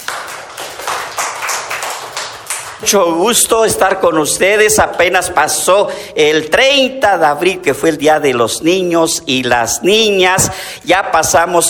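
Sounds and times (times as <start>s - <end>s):
children clapping for classmates: 0.0s - 3.4s
speech: 2.8s - 11.6s.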